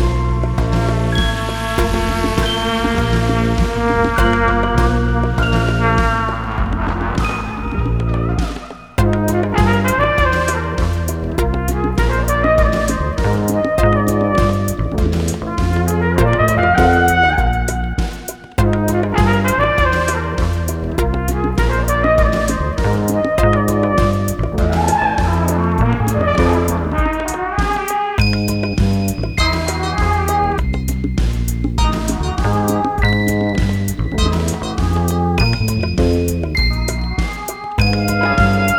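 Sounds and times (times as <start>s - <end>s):
whale groove music: 0.0s - 38.7s.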